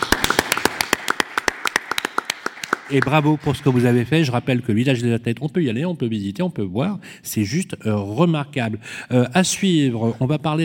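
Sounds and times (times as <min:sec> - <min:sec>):
small audience hand claps: 0:00.0 - 0:04.2
speech: 0:02.9 - 0:10.6.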